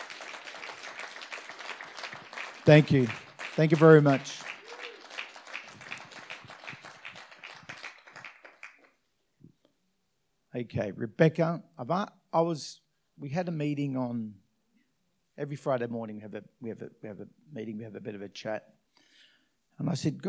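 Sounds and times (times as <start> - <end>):
audience applause: 0.0 - 9.0
speech: 2.6 - 4.5, 10.6 - 14.4, 15.4 - 18.8, 19.8 - 20.2.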